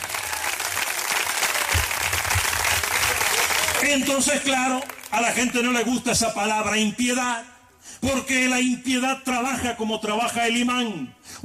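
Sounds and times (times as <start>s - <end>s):
audience applause: 0.0s - 5.6s
speech: 3.9s - 11.4s.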